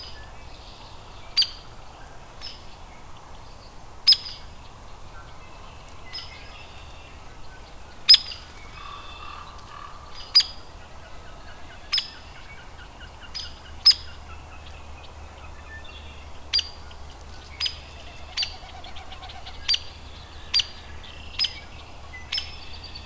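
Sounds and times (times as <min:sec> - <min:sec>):
birds twittering: 0:00.0 - 0:23.0
hairy woodpecker peek calls: 0:05.6 - 0:23.0.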